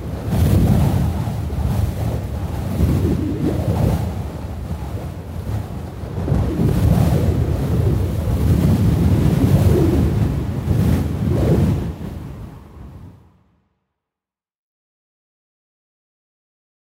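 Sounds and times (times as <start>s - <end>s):
wind blowing: 0.0s - 13.4s.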